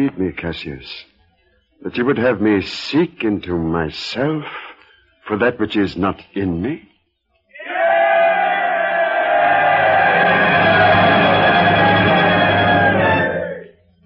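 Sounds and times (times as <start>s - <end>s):
speech: 0.0s - 1.1s, 1.8s - 4.7s, 5.3s - 6.9s
crowd shouting: 7.6s - 13.7s.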